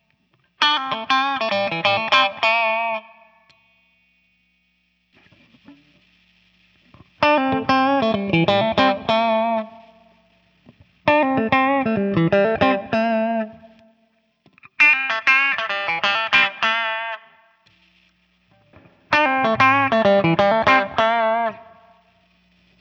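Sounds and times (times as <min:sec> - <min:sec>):
Guild X79 Skyhawk guitar clean riff: 0:00.6 - 0:03.2, 0:07.0 - 0:09.8, 0:11.1 - 0:13.9, 0:14.7 - 0:17.3, 0:18.5 - 0:22.1.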